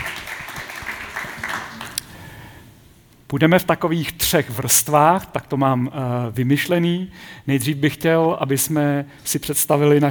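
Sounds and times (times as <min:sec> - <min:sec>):
audience applause: 0:00.0 - 0:02.0
speech: 0:03.3 - 0:10.0.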